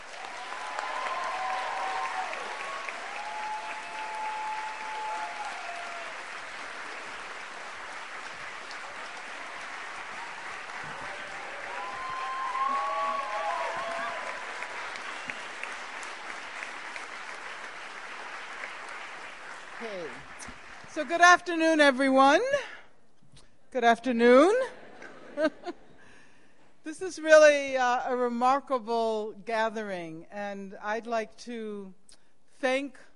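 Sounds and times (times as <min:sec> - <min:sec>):
large crowd applauding a speaker at a gathering on prison abolition: 0:00.0 - 0:20.9
speech: 0:21.0 - 0:22.7, 0:23.8 - 0:24.6, 0:27.0 - 0:32.0, 0:32.6 - 0:33.1.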